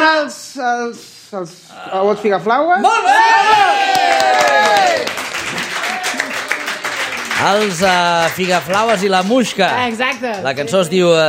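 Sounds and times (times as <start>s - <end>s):
speech: 0.2s - 5.2s, 7.4s - 11.2s
audience applause: 3.4s - 11.2s.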